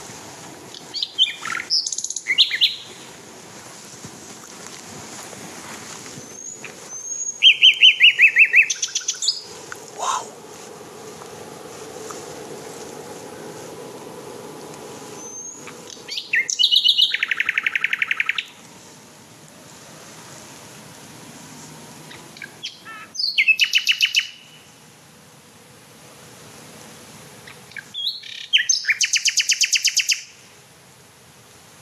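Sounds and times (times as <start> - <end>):
nightingale singing: 0.7 - 3.1, 6.0 - 10.4, 14.6 - 18.6, 22.1 - 24.7, 27.5 - 30.4.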